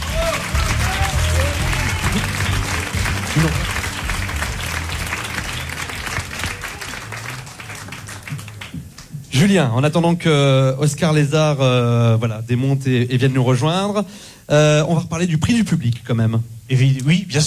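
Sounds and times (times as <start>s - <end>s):
applause: 0.0s - 9.1s
speech: 3.4s - 3.6s, 9.4s - 17.4s.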